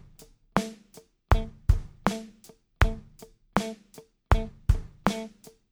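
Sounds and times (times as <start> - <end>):
groove music: 0.6 - 0.8, 1.4 - 3.0, 4.4 - 5.3.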